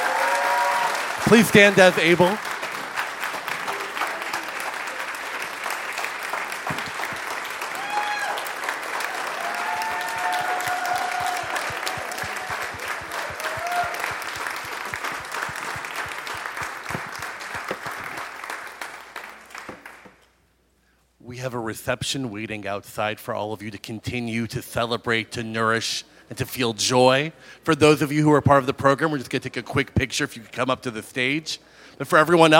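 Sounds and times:
faint voices or cheers: 0:00.0 - 0:02.3, 0:07.6 - 0:14.4
audience applause: 0:00.0 - 0:20.2
speech: 0:01.3 - 0:02.5, 0:21.9 - 0:32.5.

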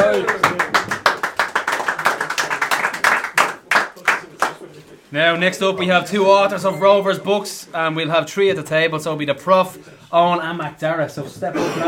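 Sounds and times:
round of applause: 0:00.0 - 0:04.6
speech: 0:05.1 - 0:11.8.

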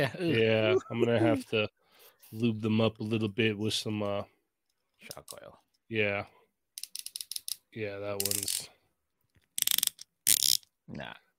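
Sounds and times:
speech: 0:00.0 - 0:04.4, 0:05.0 - 0:06.4, 0:07.7 - 0:08.8, 0:10.9 - 0:11.2
action figure's ratcheting shoulder joint clicking: 0:06.8 - 0:08.7, 0:09.4 - 0:10.7.

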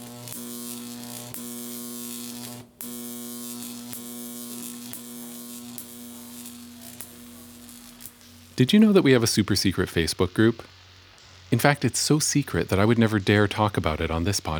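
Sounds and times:
Jacob's ladder electric arc buzzing: 0:00.0 - 0:14.5
faint electric snaps: 0:00.0 - 0:14.5
speech: 0:08.6 - 0:10.8, 0:11.5 - 0:14.5.

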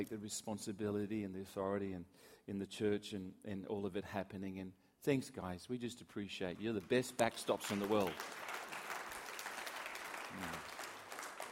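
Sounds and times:
speech: 0:00.0 - 0:08.6, 0:10.3 - 0:10.7
audience applauding: 0:06.7 - 0:11.4.

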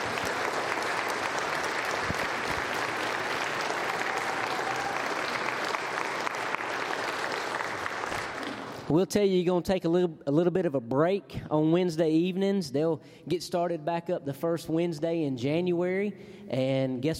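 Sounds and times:
audience applause: 0:00.0 - 0:08.9
speech: 0:08.9 - 0:17.1.

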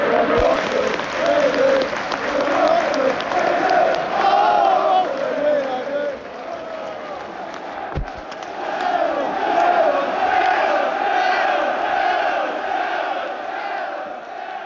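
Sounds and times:
Oxford United fans chanting and singing at Newcastle's ground: 0:00.0 - 0:14.6
sharp thud: 0:07.9 - 0:08.2.

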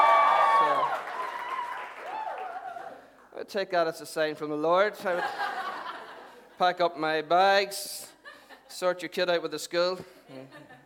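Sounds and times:
crowd cheering and whooping: 0:00.0 - 0:03.1
audience clapping: 0:00.0 - 0:03.3
speech: 0:03.5 - 0:05.6, 0:06.6 - 0:08.1, 0:08.7 - 0:10.8.

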